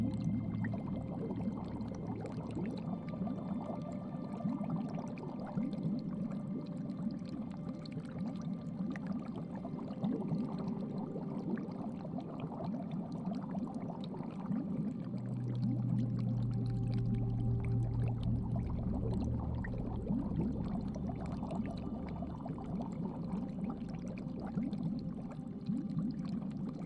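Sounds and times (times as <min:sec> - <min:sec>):
aquarium ambience: 0:00.0 - 0:26.8.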